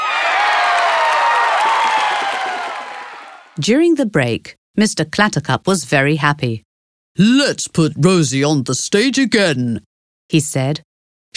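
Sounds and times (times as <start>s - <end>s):
audience applauding loudly: 0.0s - 3.6s
speech: 3.6s - 11.3s.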